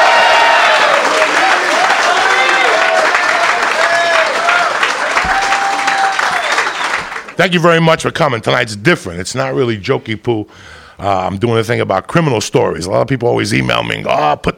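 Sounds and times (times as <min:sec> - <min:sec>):
crowd cheers and whoops: 0:00.0 - 0:07.1
audience applause: 0:00.0 - 0:07.4
speech: 0:07.4 - 0:14.5.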